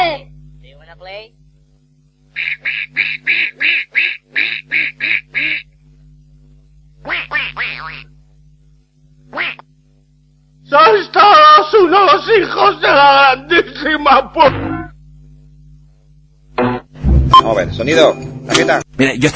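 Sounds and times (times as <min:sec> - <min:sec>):
speech: 0:00.9 - 0:01.4, 0:02.3 - 0:05.5, 0:07.1 - 0:08.1, 0:09.3 - 0:09.7, 0:10.7 - 0:14.7, 0:17.4 - 0:19.3
duck quacking: 0:02.4 - 0:05.7, 0:07.0 - 0:08.0, 0:09.3 - 0:09.6.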